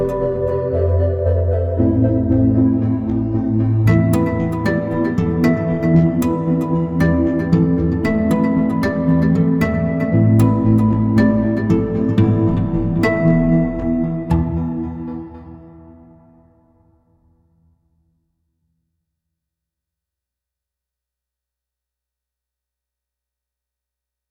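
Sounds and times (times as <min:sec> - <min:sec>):
harmonic tone: 0:00.0 - 0:14.4.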